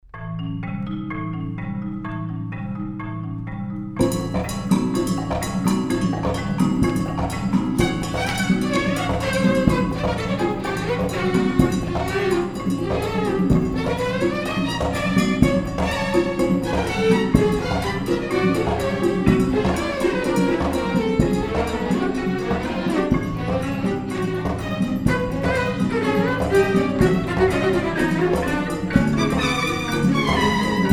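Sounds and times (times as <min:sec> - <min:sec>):
marimba: 0:00.1 - 0:30.9.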